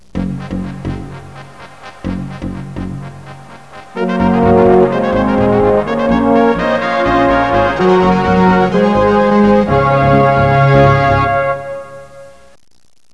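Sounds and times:
fanfare: 0:00.2 - 0:12.5.

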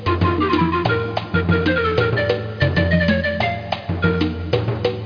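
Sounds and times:
anthem music: 0:00.1 - 0:04.8.

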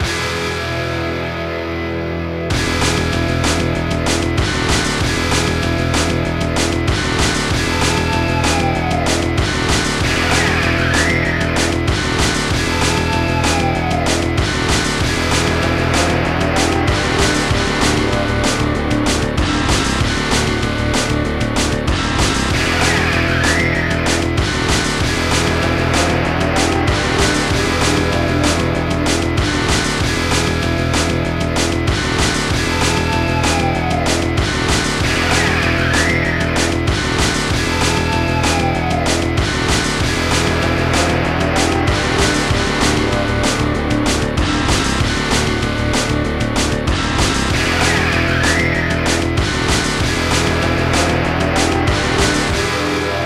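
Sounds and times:
heavy guitars: 0:00.0 - 0:53.2.

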